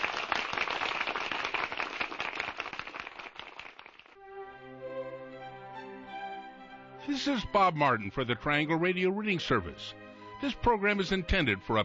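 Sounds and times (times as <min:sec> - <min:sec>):
crowd applause: 0:00.0 - 0:04.2
sustained musical tune: 0:04.2 - 0:11.8
speech: 0:07.1 - 0:11.8.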